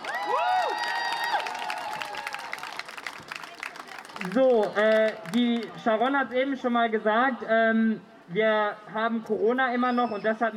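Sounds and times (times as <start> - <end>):
crowd applauding: 0.0 - 5.8
speech: 4.2 - 10.5.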